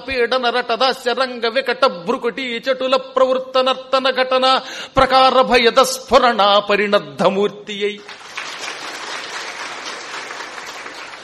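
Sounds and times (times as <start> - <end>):
speech: 0.0 - 8.2
audience applause after a Telugu verse recitation: 8.0 - 11.2.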